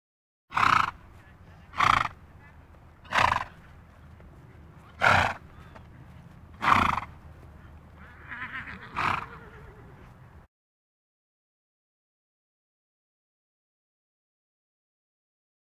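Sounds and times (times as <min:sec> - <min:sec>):
farm animal snorts: 0:00.5 - 0:01.0, 0:01.6 - 0:03.6, 0:05.0 - 0:05.7, 0:06.6 - 0:07.1, 0:08.9 - 0:09.6
farm animal grunts: 0:00.5 - 0:03.6, 0:04.9 - 0:05.7, 0:06.6 - 0:07.2, 0:08.0 - 0:10.1.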